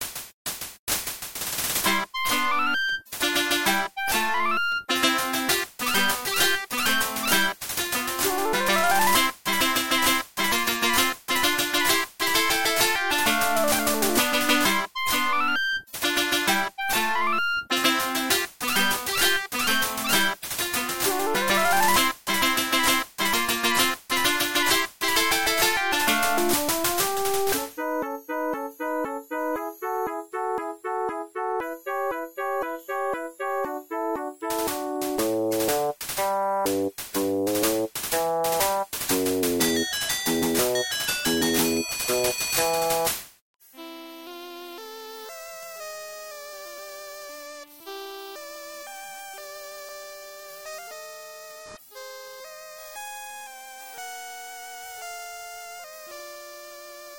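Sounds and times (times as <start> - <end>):
staff roll credits music: 1.8 - 43.2.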